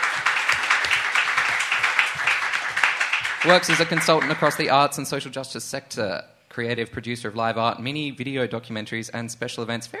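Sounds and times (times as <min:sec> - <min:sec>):
crowd applauding: 0:00.0 - 0:05.1
speech: 0:03.4 - 0:09.9.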